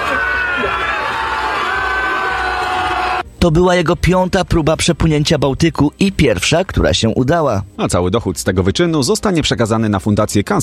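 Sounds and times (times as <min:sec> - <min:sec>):
children crying out: 0:00.0 - 0:03.2
large crowd cheering and shouting: 0:00.0 - 0:03.3
speech: 0:03.4 - 0:10.6.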